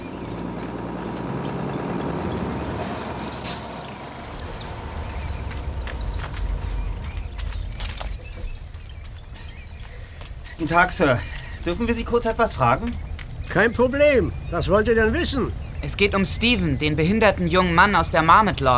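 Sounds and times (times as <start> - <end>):
shuttle bus pulling in at a bus stop: 0.0 - 18.7
hissing bursts: 8.0 - 10.7
speech: 10.6 - 18.7.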